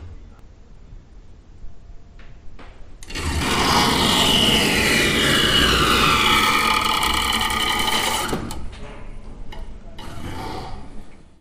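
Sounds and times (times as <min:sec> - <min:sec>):
automatic electric doors: 0:03.0 - 0:11.2.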